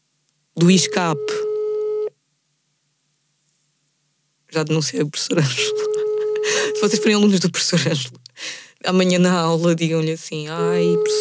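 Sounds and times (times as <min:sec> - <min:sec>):
speech: 0:00.6 - 0:01.5, 0:04.6 - 0:11.1
telephone call tone from an unanswered line: 0:00.6 - 0:02.1, 0:05.5 - 0:07.4, 0:10.6 - 0:11.1.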